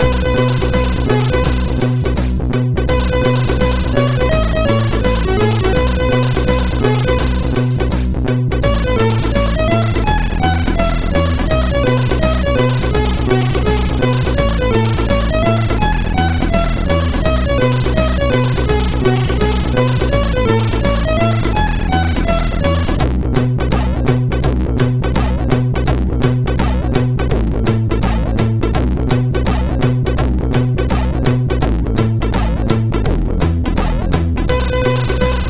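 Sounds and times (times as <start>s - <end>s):
reggae music on a MOS6581R4: 0.0s - 35.4s.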